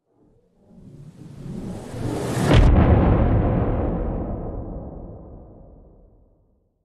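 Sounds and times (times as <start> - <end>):
cinematic whoosh: 0.8 - 6.2
missile-like explosion impact: 2.1 - 6.4.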